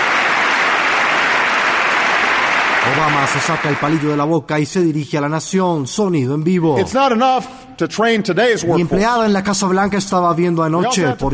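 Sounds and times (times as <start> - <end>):
thunderous ovation applause: 0.0 - 4.3
speech: 2.8 - 11.3.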